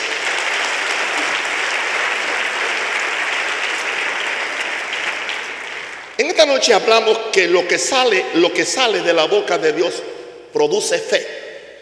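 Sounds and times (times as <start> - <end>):
loud applause from a large audience: 0.0 - 6.2
speech: 6.3 - 11.4.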